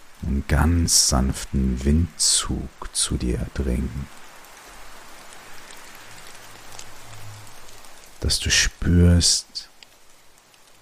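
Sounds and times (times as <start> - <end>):
steady rain pattering on a surface: 0.0 - 10.7
speech: 0.2 - 4.2, 8.2 - 9.7.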